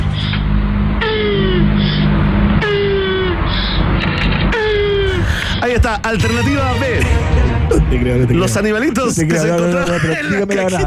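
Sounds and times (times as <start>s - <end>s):
constant low rumble: 0.0s - 9.4s
land tortoise mating vocalization groaning calls: 1.0s - 5.3s
speech: 5.8s - 10.8s.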